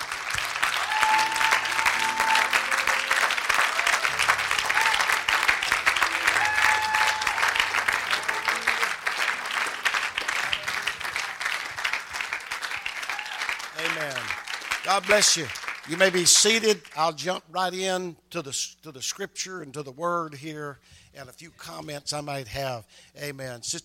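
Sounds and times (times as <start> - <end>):
audience clapping hands: 0.0 - 17.2
speech: 15.0 - 23.8.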